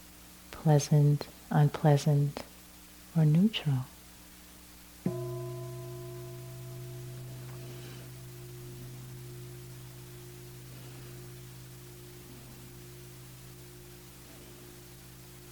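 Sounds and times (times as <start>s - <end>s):
speech: 0.6s - 2.5s, 3.2s - 3.9s
meditation bell ringing: 5.1s - 15.4s.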